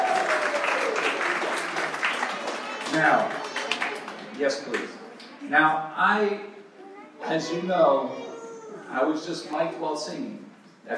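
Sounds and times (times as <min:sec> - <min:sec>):
audience applause: 0:00.0 - 0:04.8
speech: 0:02.9 - 0:03.4, 0:04.4 - 0:06.6, 0:07.2 - 0:08.2, 0:08.9 - 0:10.9.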